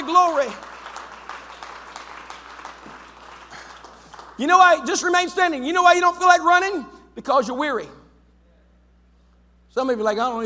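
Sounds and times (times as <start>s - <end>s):
audience clapping hands: 0.0s - 5.3s
speech: 0.1s - 0.7s, 4.4s - 8.0s, 9.8s - 10.4s.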